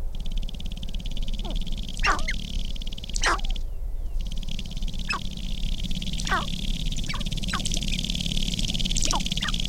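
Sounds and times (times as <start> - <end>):
sharp-tailed grouse making clicking pops: 0.1 - 3.6, 4.2 - 9.6.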